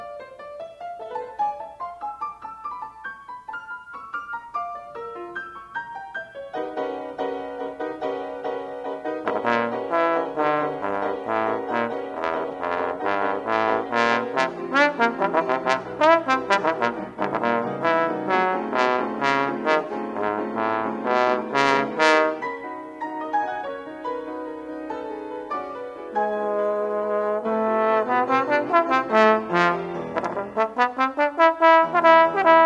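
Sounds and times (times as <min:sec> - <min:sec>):
piano: 0:00.0 - 0:32.6
trombone: 0:08.9 - 0:22.6, 0:26.2 - 0:32.6.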